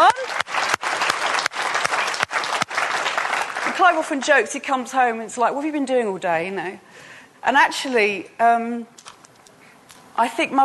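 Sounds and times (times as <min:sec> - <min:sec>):
audience applause honouring mothers: 0:00.0 - 0:04.0
speech: 0:03.9 - 0:09.0, 0:10.2 - 0:10.6.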